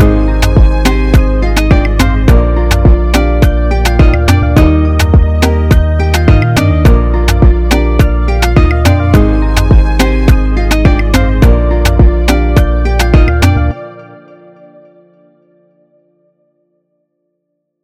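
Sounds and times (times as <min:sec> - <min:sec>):
music beat: 0:00.0 - 0:14.0.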